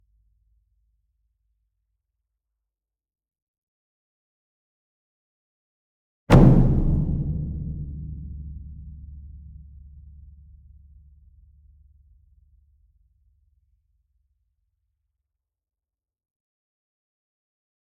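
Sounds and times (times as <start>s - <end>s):
large concert bass drum medium hit: 6.3s - 10.2s.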